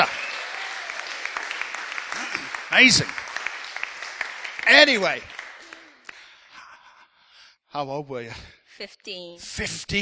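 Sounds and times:
audience round of applause: 0.0s - 6.5s
speech: 2.8s - 3.2s, 4.7s - 5.3s, 7.7s - 10.0s.

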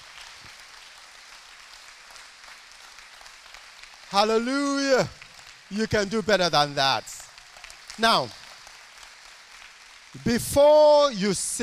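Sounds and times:
audience clapping hands: 0.0s - 11.6s
speech: 4.1s - 7.1s, 8.0s - 8.4s, 10.1s - 11.6s.

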